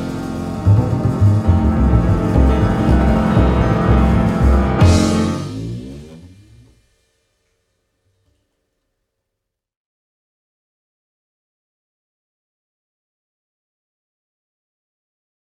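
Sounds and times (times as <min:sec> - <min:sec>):
quartet play-along without trumpet: 0:00.3 - 0:06.5.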